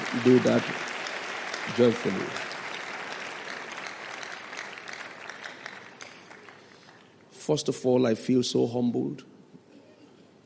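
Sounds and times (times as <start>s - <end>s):
audience clapping: 0.0s - 7.3s
speech: 0.2s - 0.9s, 1.7s - 2.5s, 7.5s - 9.3s.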